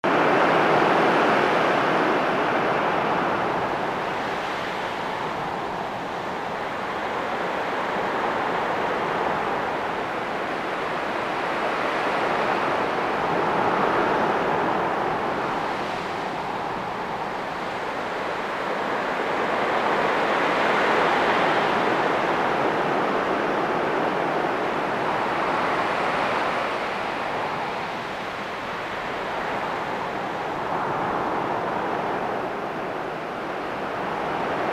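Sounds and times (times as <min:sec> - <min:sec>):
calm wind breeze on a summit: 0:00.0 - 0:34.7.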